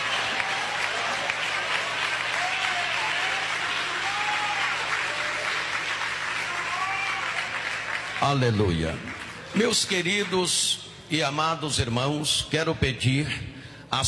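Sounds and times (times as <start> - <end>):
audience clapping hands: 0.0 - 10.8
speech: 8.2 - 14.0.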